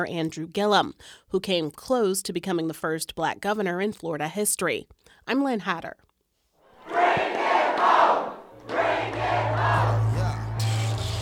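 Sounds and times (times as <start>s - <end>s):
speech: 0.0s - 6.0s
crowd cheering at a victory celebration in a downtown hotel: 6.8s - 11.2s.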